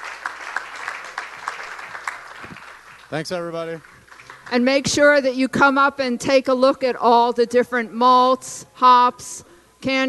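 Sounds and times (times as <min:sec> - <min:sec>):
crowd applauding: 0:00.0 - 0:04.8
speech: 0:03.1 - 0:03.9, 0:04.5 - 0:10.0.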